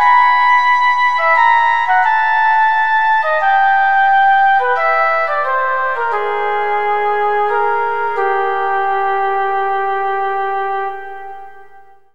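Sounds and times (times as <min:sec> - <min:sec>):
solo flute sonata movement: 0:00.0 - 0:12.1.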